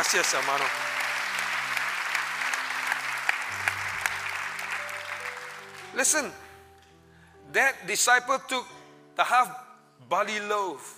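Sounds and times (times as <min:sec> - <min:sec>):
crowd clapping: 0:00.0 - 0:06.3
speech: 0:00.1 - 0:00.9, 0:06.0 - 0:06.4, 0:07.5 - 0:10.9.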